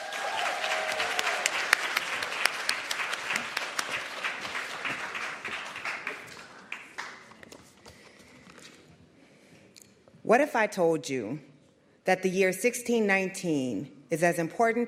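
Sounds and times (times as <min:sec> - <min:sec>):
audience applause welcoming a speaker onto a stage in Washington, D.C.: 0:00.0 - 0:07.5
speech: 0:10.3 - 0:14.8.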